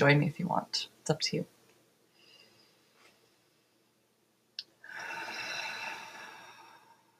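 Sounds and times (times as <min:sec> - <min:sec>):
speech: 0:00.0 - 0:01.6
person drawing a deep breath at the start of a meditation: 0:04.8 - 0:07.1.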